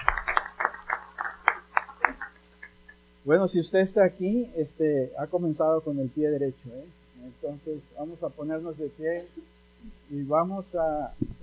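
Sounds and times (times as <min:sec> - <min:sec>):
audience applause: 0:00.0 - 0:02.8
speech: 0:03.2 - 0:11.4.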